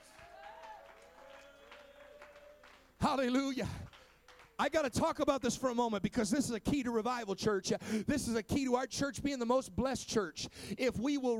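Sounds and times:
audience hands clapping: 0.0s - 5.6s
speech: 3.1s - 3.9s, 4.6s - 11.3s.

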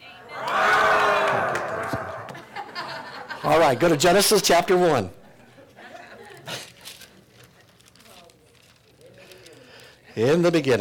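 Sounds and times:
scattered shouts and laughter: 0.3s - 3.4s
crowd roaring like lions: 0.4s - 2.4s
speech: 3.6s - 5.2s, 10.2s - 10.7s.

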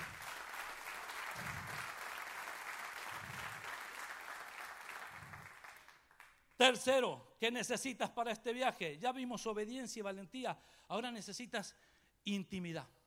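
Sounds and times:
audience applauding: 0.0s - 6.4s
speech: 6.6s - 13.0s.

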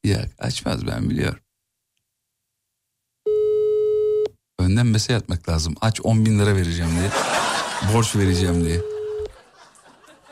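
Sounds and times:
speech: 0.1s - 1.4s, 4.7s - 8.9s
telephone ringback tone: 3.3s - 4.3s, 8.7s - 9.3s
laughter: 6.8s - 10.3s.

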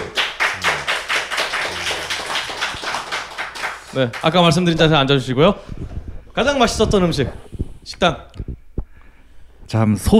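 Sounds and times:
clapping: 0.0s - 4.6s
speech: 3.9s - 8.4s, 9.7s - 10.1s.

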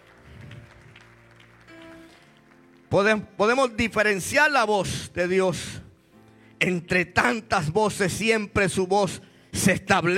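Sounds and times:
audience applause: 0.0s - 3.2s
speech: 2.9s - 5.8s, 6.6s - 10.1s.

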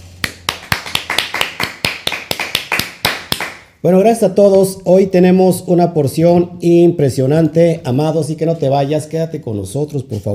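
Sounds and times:
applause: 0.2s - 3.7s
speech: 3.8s - 10.3s.

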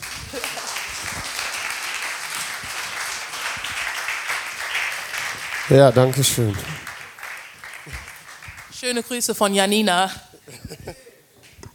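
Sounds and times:
audience applause: 0.0s - 9.2s
speech: 5.7s - 6.8s, 8.9s - 10.3s
laughter: 10.2s - 11.2s.

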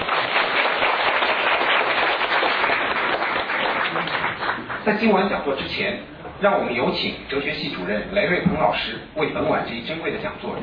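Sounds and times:
audience applause: 0.0s - 4.8s
speech: 4.9s - 10.6s.

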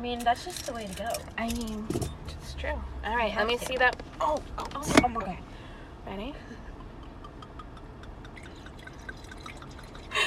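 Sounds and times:
speech: 0.0s - 6.6s
wine poured from a freshly opened bottle in a parked car: 8.2s - 10.2s.

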